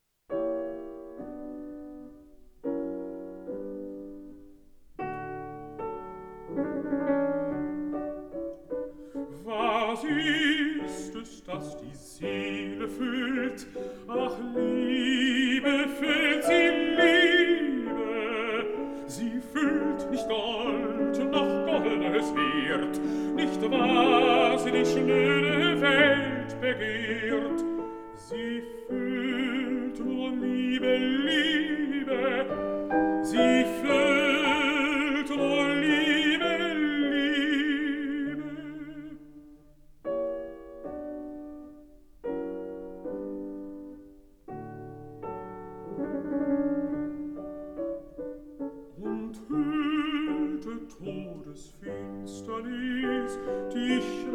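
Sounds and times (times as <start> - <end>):
piano: 0.0 - 54.3
person singing: 9.3 - 39.4, 48.9 - 54.3.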